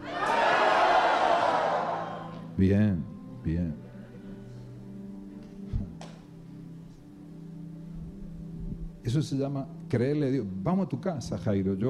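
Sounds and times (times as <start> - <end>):
crowd shouting a battle cry: 0.0 - 2.3
speech: 2.6 - 3.8, 9.0 - 11.8.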